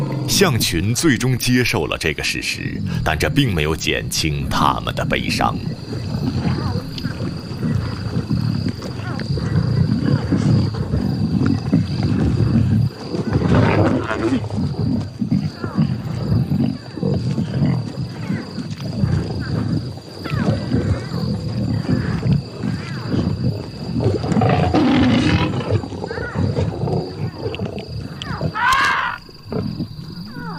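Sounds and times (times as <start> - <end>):
pride of lions roaring at night: 0.0 - 30.5
speech: 0.3 - 6.7
high-pitched yelps: 28.4 - 29.2.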